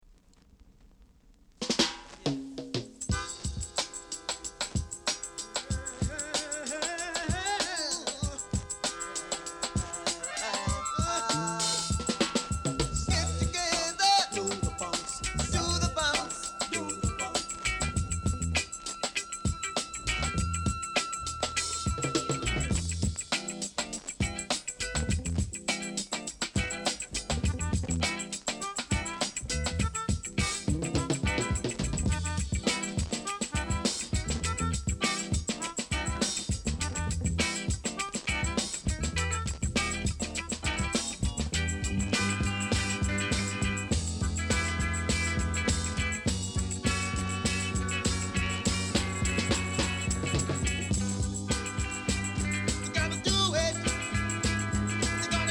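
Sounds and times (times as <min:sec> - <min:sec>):
funk music: 0:01.6 - 0:55.4.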